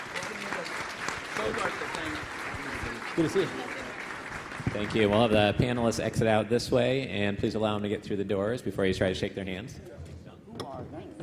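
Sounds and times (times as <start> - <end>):
audience applause for panelists: 0.0 - 5.9
speech: 1.4 - 1.9, 3.2 - 3.7, 4.7 - 10.0.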